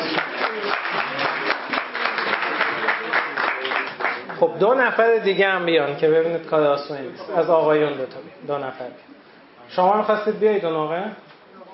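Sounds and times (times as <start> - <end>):
audience applause: 0.0 - 4.4
speech: 4.4 - 11.2.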